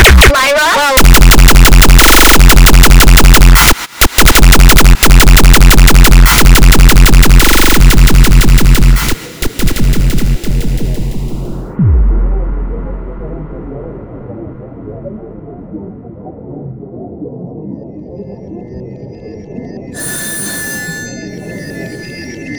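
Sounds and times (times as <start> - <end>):
bass: 0.0 - 17.8.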